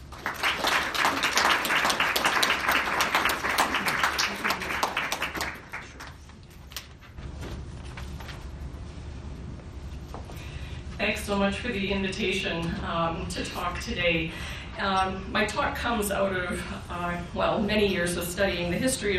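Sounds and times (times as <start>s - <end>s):
audience applause welcoming a speaker at an academic talk: 0.0s - 6.3s
speech: 11.3s - 19.1s.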